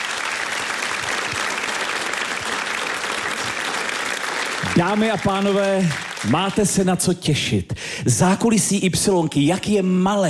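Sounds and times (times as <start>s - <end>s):
full audience applauding: 0.0s - 6.9s
speech: 4.7s - 10.2s.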